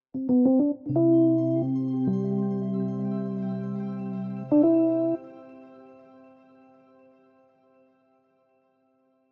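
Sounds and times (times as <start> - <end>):
theme music: 0.3 - 5.7.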